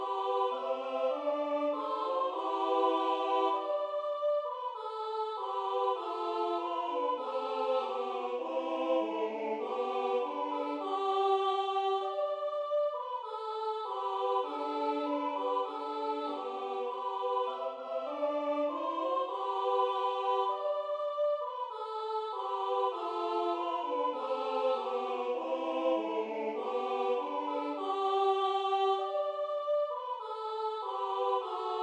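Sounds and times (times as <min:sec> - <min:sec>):
Bucovina carol singing: 0:00.0 - 0:31.8.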